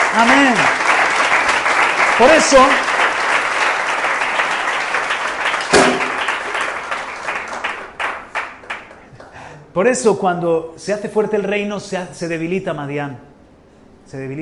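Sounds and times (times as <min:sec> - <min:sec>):
audience applause: 0:00.0 - 0:09.3
speech: 0:00.2 - 0:00.8, 0:02.2 - 0:02.9, 0:09.8 - 0:13.3, 0:14.1 - 0:14.4.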